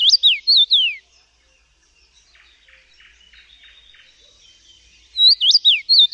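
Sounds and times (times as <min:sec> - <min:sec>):
common rosefinch singing a melodious whistle: 0:00.0 - 0:01.0, 0:05.2 - 0:06.1.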